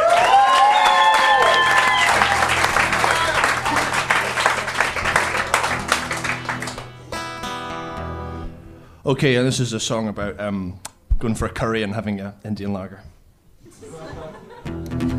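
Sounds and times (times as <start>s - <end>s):
audience applause: 0.0s - 7.0s
laughter: 1.4s - 6.0s, 13.6s - 14.8s
speech: 9.1s - 13.2s.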